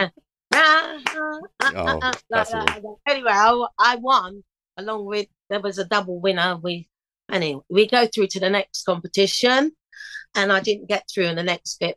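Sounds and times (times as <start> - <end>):
speech: 0.0 - 11.9
people clapping off-beat: 0.5 - 2.8.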